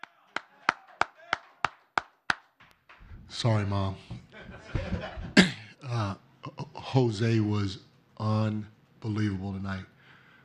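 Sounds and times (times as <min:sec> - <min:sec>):
person clapping hands: 0:00.0 - 0:03.1
speech: 0:03.3 - 0:05.2, 0:06.9 - 0:09.9
laughter: 0:04.1 - 0:05.7.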